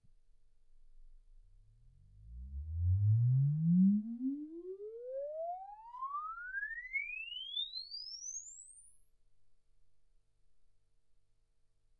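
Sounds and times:
exponential sine sweep from 10 Hz to 24 kHz: 0:02.2 - 0:09.6.

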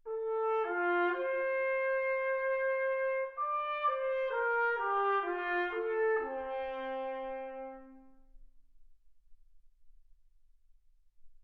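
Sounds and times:
trumpet: 0:00.0 - 0:08.6.

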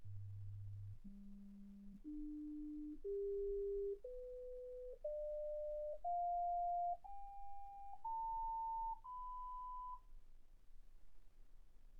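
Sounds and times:
sine tones: 0:00.0 - 0:10.1.

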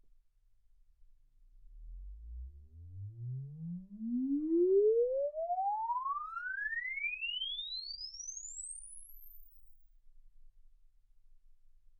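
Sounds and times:
exponential sine sweep from 10 Hz to 24 kHz: 0:01.9 - 0:09.7.

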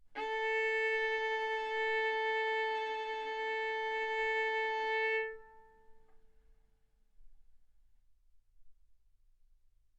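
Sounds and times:
violin bowed arco notes: 0:00.1 - 0:06.2.

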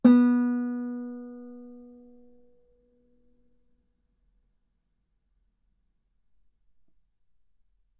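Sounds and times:
guitar note B3: 0:00.0 - 0:02.1.

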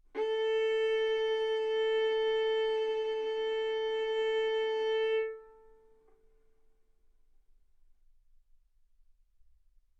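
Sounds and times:
violin arco on A string: 0:00.1 - 0:05.9.

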